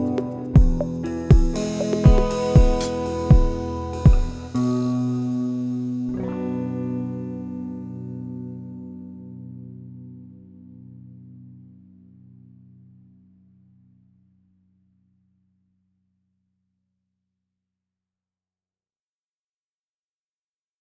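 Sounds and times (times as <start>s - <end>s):
guitar test: 0.0s - 14.6s.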